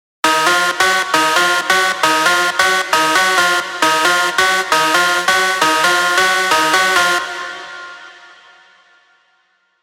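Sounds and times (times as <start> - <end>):
rave synth stabs: 0.2 - 9.0.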